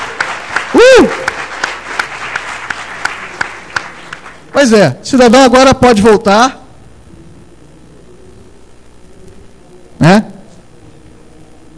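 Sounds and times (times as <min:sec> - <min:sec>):
audience applause: 0:00.0 - 0:04.5
speech: 0:04.6 - 0:06.6, 0:10.0 - 0:10.3.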